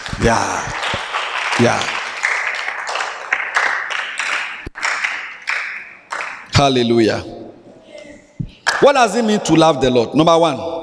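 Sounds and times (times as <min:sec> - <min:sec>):
audience clapping: 0:00.0 - 0:06.6, 0:08.6 - 0:09.0
speech: 0:00.2 - 0:00.8, 0:01.6 - 0:02.0, 0:06.6 - 0:07.4, 0:08.8 - 0:10.8.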